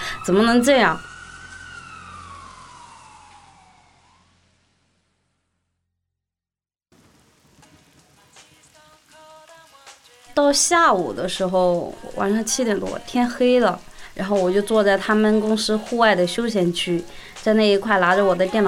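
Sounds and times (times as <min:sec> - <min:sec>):
ambulance siren passing in the rain: 0:00.0 - 0:04.5
rain: 0:00.0 - 0:05.0, 0:06.9 - 0:18.6
wet road noise: 0:00.0 - 0:05.2, 0:07.0 - 0:18.5
speech: 0:00.2 - 0:01.1, 0:10.4 - 0:18.6.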